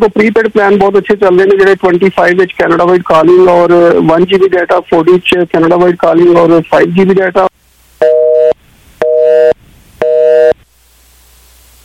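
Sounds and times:
speech: 0.0s - 8.6s
telephone tone beeps after a disconnected call: 8.0s - 10.6s.

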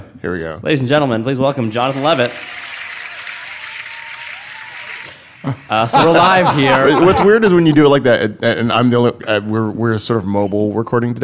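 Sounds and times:
speech: 0.2s - 2.6s, 5.4s - 11.2s
recorded audience applause sound effect played as a gag: 1.6s - 5.5s
laughter: 5.4s - 8.0s.

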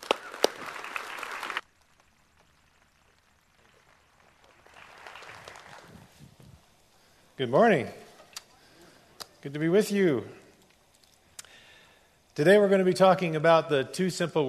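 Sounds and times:
applause at a church worship service welcoming a guest speaker: 0.0s - 6.2s
speech: 7.4s - 8.0s, 9.4s - 10.4s, 12.4s - 14.4s.

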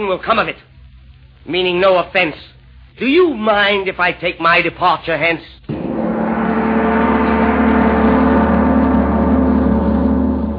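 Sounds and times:
speech: 0.0s - 0.8s, 1.4s - 5.6s
big brass gong struck: 5.7s - 10.5s.

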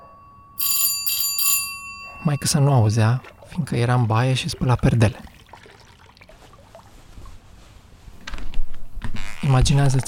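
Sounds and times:
doorbell ringing: 0.0s - 4.5s
speech: 2.2s - 5.3s, 9.6s - 10.0s.

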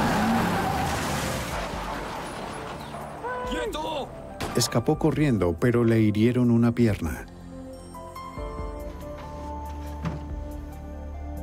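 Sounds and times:
car crashing into a patrol car: 0.0s - 3.7s
speech: 3.7s - 7.3s.

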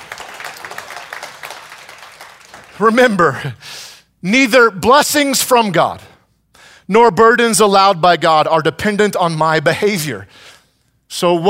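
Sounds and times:
audience clapping: 0.0s - 3.3s
speech: 2.8s - 6.1s, 6.9s - 10.5s, 11.1s - 11.4s.

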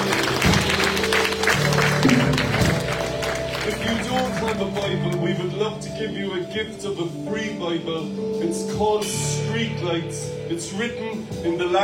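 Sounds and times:
audience applause: 0.0s - 5.2s
speech: 5.7s - 11.8s.

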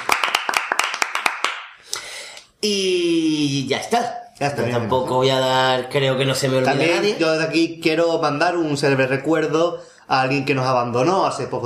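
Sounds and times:
handful of people clapping: 0.0s - 1.9s
speech: 2.6s - 11.6s.

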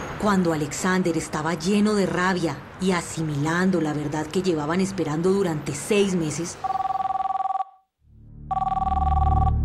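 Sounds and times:
speech: 0.2s - 6.8s
telephone ringing with an incoming call: 6.6s - 7.9s, 8.5s - 9.6s.

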